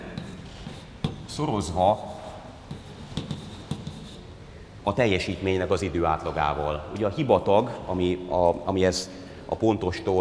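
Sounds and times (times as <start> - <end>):
lecturer writing out a physics formula: 0.0 - 1.3, 1.9 - 4.3
speech: 1.4 - 2.2, 4.8 - 10.2.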